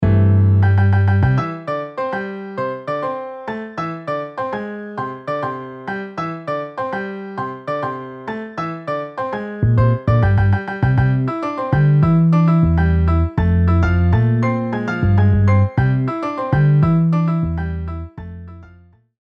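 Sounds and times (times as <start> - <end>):
piano bass notes: 0.0 - 19.1.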